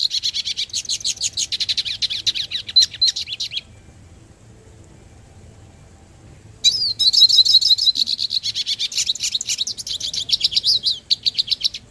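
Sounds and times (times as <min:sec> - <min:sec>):
hooded siskin twittering: 0:00.0 - 0:03.9, 0:06.6 - 0:11.8.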